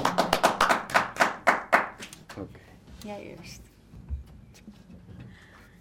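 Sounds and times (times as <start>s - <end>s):
applause: 0.0s - 2.5s
speech: 2.4s - 3.7s.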